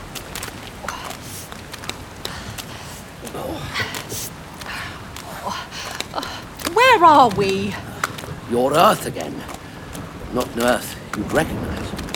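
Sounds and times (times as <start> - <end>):
footsteps walking over to a ridge in an audio drama: 0.0 - 12.1
soft breathing: 0.8 - 6.6
speech: 7.0 - 7.8, 8.5 - 9.5, 10.3 - 11.7.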